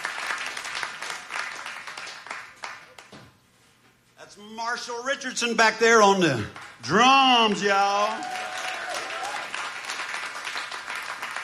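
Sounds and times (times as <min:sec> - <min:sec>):
live audience applause at the Third and Lindsley in Nashville, Tennessee: 0:00.0 - 0:03.0, 0:06.6 - 0:11.4
speech: 0:04.4 - 0:08.4.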